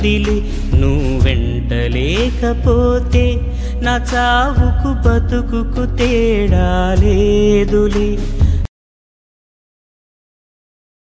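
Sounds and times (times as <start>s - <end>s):
sad Telugu background music: 0.0s - 8.7s.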